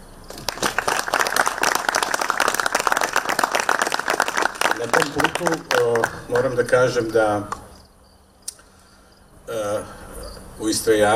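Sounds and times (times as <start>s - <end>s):
audience applause after a speech at a cultural event: 0.3s - 7.2s
speech: 4.8s - 7.6s, 10.6s - 11.1s.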